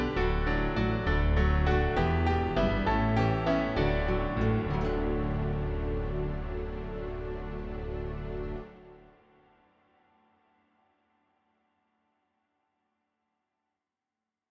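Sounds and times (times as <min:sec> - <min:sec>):
backing music: 0:00.0 - 0:09.0.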